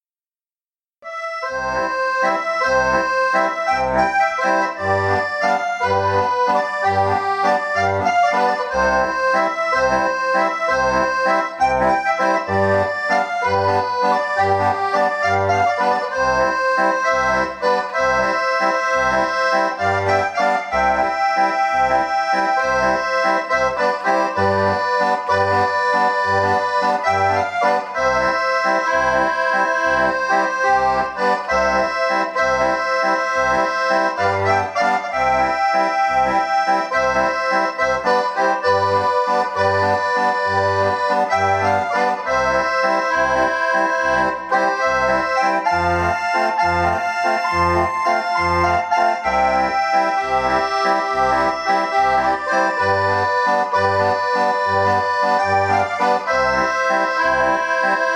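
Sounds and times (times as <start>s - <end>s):
waltz played on a Roland keyboard in C and F: 1.1s - 58.1s.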